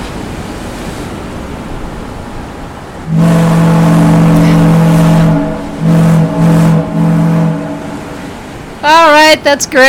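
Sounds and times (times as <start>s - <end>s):
ship's foghorn blasts: 3.0s - 8.8s
speech: 9.4s - 9.8s.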